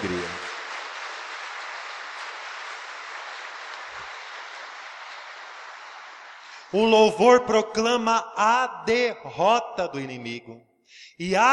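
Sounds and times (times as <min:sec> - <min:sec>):
audience applause: 0:00.0 - 0:06.7
speech: 0:06.7 - 0:11.5.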